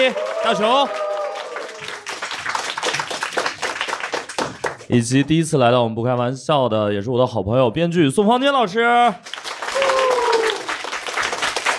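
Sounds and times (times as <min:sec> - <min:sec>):
speech: 0:00.0 - 0:01.0, 0:04.9 - 0:09.3
studio audience applause on a Chinese comedy talk show: 0:00.0 - 0:04.9, 0:09.2 - 0:11.7.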